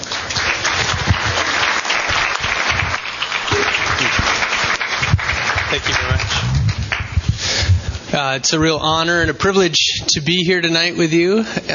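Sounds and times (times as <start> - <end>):
audience applause welcoming a guest speaker: 0.0 - 7.3
speech: 8.2 - 11.7.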